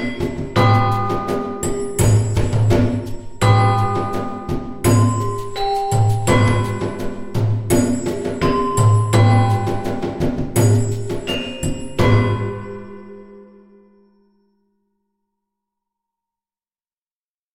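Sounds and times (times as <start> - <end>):
drums: 0.0 - 13.1.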